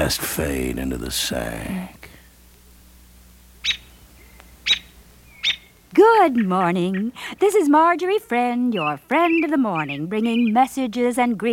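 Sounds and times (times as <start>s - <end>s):
speech: 0.0s - 2.0s, 6.0s - 11.5s
low steady hum: 0.0s - 11.5s
bird singing in the morning: 3.6s - 7.2s, 8.5s - 11.5s.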